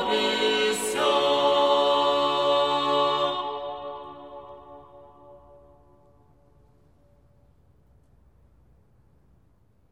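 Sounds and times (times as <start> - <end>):
Russian spiritual music: 0.0 - 7.5.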